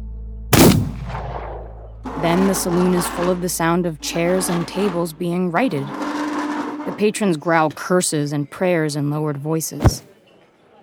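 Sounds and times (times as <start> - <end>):
gunshot: 0.6 - 1.8
speech: 2.2 - 6.0, 7.0 - 10.1.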